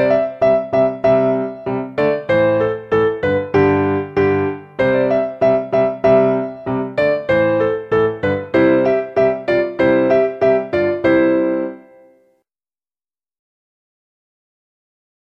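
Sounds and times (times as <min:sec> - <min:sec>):
piano accompaniment for French horn at performance tempo: 0:00.0 - 0:12.4.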